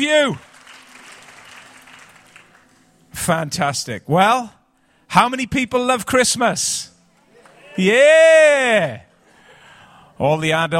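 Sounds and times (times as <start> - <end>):
speech: 0.0 - 0.5, 3.2 - 6.9, 7.8 - 9.1, 10.2 - 10.7
audience clapping: 0.0 - 3.0.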